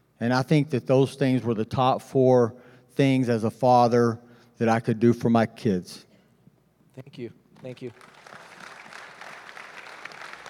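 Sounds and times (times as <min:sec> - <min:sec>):
speech: 0:00.2 - 0:06.1, 0:07.0 - 0:08.2
audience applause: 0:07.6 - 0:10.4.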